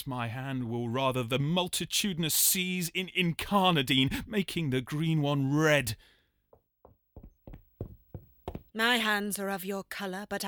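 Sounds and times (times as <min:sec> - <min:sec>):
speech: 0:00.0 - 0:06.1, 0:08.8 - 0:10.4
knocking at a door: 0:06.5 - 0:08.7.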